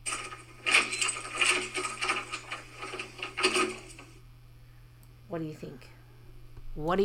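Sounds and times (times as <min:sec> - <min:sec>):
front door being forcefully opened: 0:00.0 - 0:04.2
speech: 0:05.4 - 0:06.0, 0:06.8 - 0:07.0.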